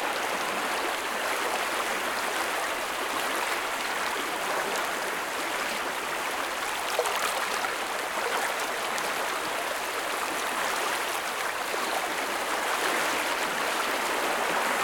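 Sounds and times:
waves on river: 0.0 - 14.8.

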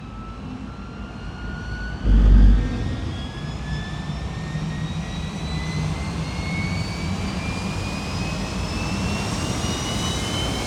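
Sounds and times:
MiG-15 UTI jet aircraft departing: 0.2 - 10.6
MiG-15 UTI jet engine starting: 2.0 - 4.8.

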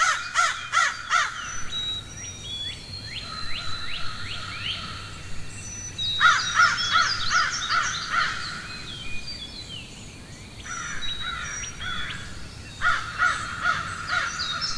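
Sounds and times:
crows cawing in a forest: 0.0 - 1.6, 6.2 - 8.7, 10.7 - 14.7.

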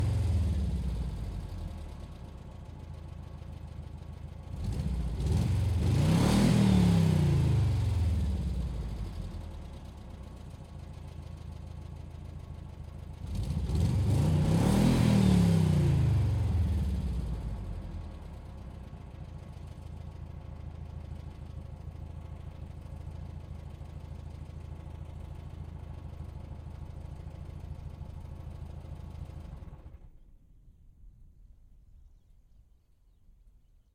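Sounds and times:
distant 1943 Volkswagen Kübelwagen engine starting, idling, revving and stopping: 0.0 - 2.3, 3.2 - 9.7, 12.7 - 30.2.

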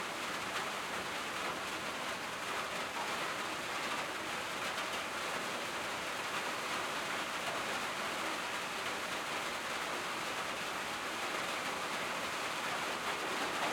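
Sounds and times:
heavy rain on a metal shed roof: 0.0 - 13.7.

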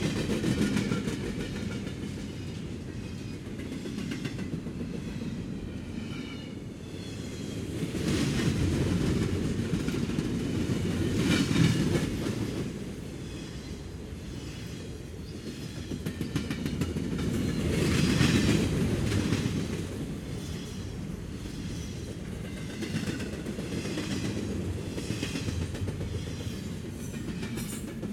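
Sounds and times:
freight train with locomotive and cars passing by: 0.0 - 28.1.

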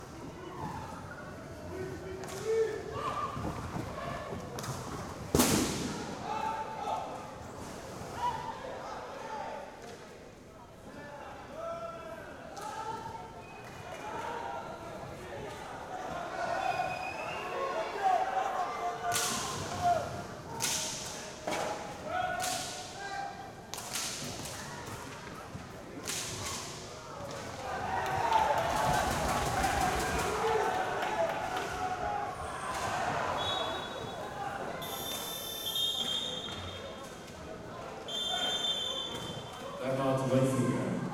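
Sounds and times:
men's league roller hockey match ambience: 0.0 - 41.1.

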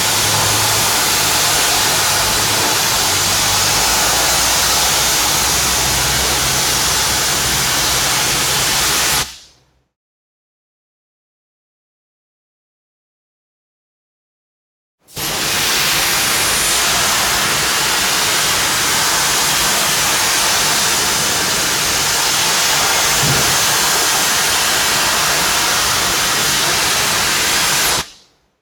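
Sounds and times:
industrial factory machine cutting steel: 0.0 - 9.3, 16.1 - 28.1.

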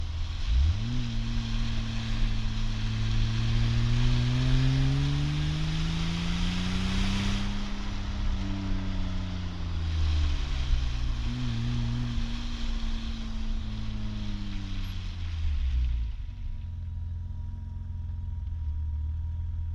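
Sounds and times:
BMW 520i exhaust at rear bumper starting and accelerating in medium everyday drive: 0.0 - 19.7.

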